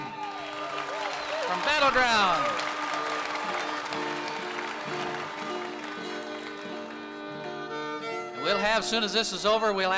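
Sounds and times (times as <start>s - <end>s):
crowd applauding for a contestant: 0.0s - 8.6s
speech: 1.6s - 2.7s, 8.5s - 9.9s.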